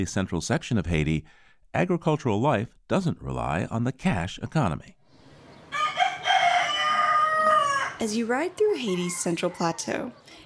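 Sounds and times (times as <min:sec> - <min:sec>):
speech: 0:00.0 - 0:05.0, 0:08.0 - 0:10.4
rooster crowing: 0:05.7 - 0:10.4.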